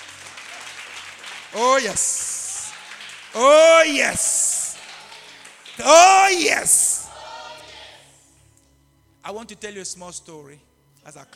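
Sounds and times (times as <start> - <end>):
audience clapping: 0.0 - 7.6
speech: 1.5 - 2.2, 3.3 - 4.3, 5.8 - 6.8, 9.2 - 11.3.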